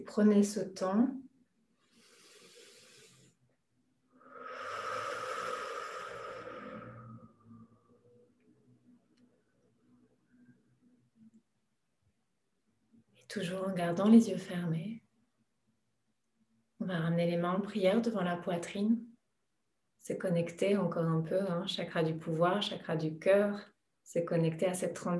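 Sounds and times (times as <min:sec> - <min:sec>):
speech: 0:00.0 - 0:01.3, 0:13.3 - 0:15.0, 0:16.8 - 0:19.1, 0:20.0 - 0:25.1
deep breaths exhaling slowly through the mouth: 0:01.8 - 0:03.4, 0:04.1 - 0:08.1
faint sustained tones: 0:04.3 - 0:08.8.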